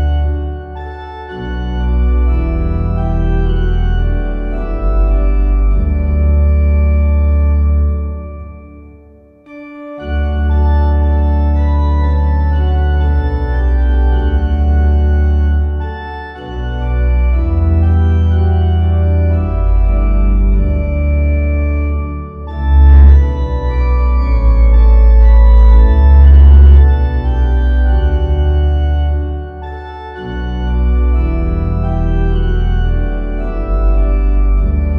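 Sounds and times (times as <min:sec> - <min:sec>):
organ playing a hymn: 0:00.0 - 0:34.9.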